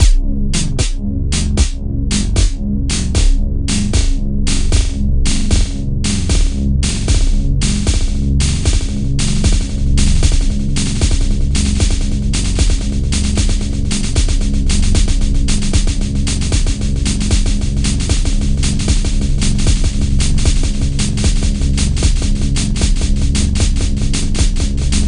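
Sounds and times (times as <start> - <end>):
decaying loop: 0.0 - 25.0.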